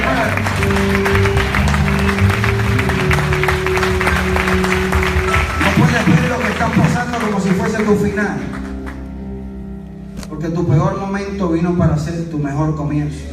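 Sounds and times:
audience applause: 0:00.0 - 0:09.0
sustained low musical tones: 0:00.0 - 0:13.3
speech: 0:10.8 - 0:13.3.

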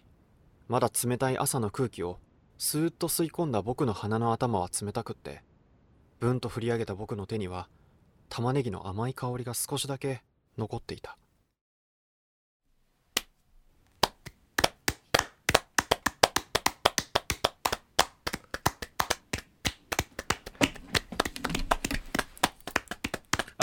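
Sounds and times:
speech: 0:00.7 - 0:05.5, 0:06.2 - 0:11.2
pair of hands clapping in a standing ovation: 0:13.2 - 0:23.6.

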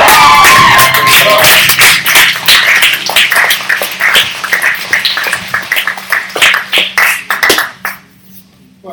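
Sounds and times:
cheers and voices: 0:00.0 - 0:01.6
audience applause: 0:00.0 - 0:08.0.

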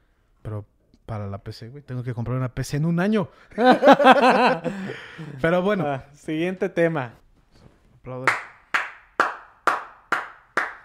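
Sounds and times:
speech: 0:00.4 - 0:07.2, 0:08.0 - 0:08.4
laughter: 0:03.6 - 0:05.8
hand clapping: 0:08.2 - 0:10.8.

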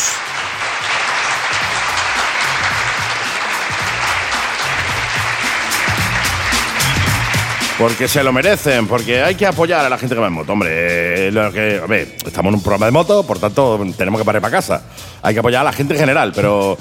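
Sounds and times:
applause: 0:00.0 - 0:09.9
speech: 0:07.8 - 0:16.7.

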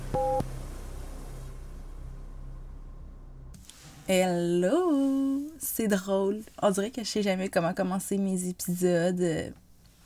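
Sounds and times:
beep: 0:00.1 - 0:00.4
speech: 0:04.1 - 0:09.6.

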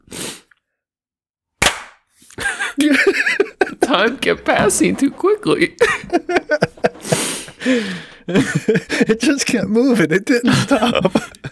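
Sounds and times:
hand clap: 0:01.6 - 0:02.0
laughter: 0:02.4 - 0:11.5
speech: 0:02.8 - 0:06.4, 0:07.6 - 0:11.5.

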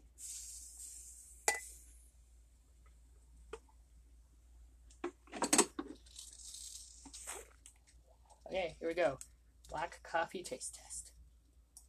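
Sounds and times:
cup and pot clinking and knocking: 0:01.5 - 0:01.7
speech: 0:08.6 - 0:11.1.

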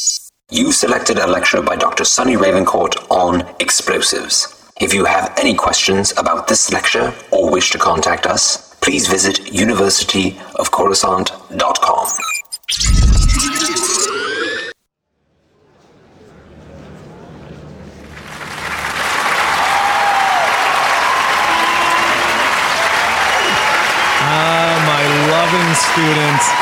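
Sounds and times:
speech: 0:00.5 - 0:13.0, 0:26.0 - 0:26.5
short tonal burst: 0:12.1 - 0:14.8
students' welcoming applause: 0:18.4 - 0:26.5
cheers: 0:18.9 - 0:26.5.

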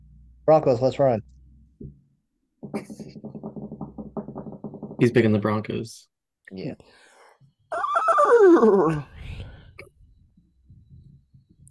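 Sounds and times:
speech: 0:00.5 - 0:02.0, 0:02.7 - 0:03.1, 0:05.0 - 0:07.0, 0:08.4 - 0:09.1
stallion neighing: 0:07.7 - 0:09.1.

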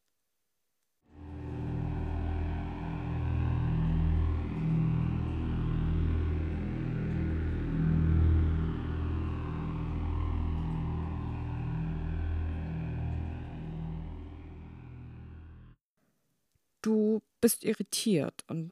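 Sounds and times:
low droning hum: 0:01.1 - 0:15.8
speech: 0:16.8 - 0:18.7.

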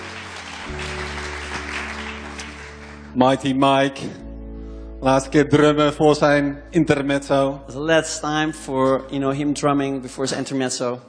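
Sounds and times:
audience applause for the band: 0:00.0 - 0:03.2
speech: 0:00.7 - 0:00.9, 0:03.1 - 0:04.2, 0:05.0 - 0:11.0.

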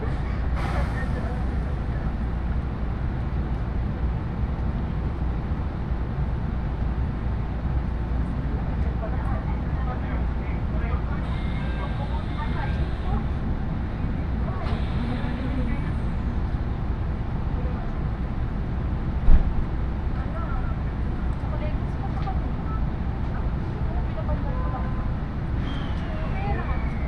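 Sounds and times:
faint voices: 0:00.0 - 0:02.6, 0:08.3 - 0:18.4, 0:20.1 - 0:27.0
313 series train carriage rumble on the Iida Line: 0:00.0 - 0:27.0
brief squeals and clicks: 0:25.6 - 0:27.0.

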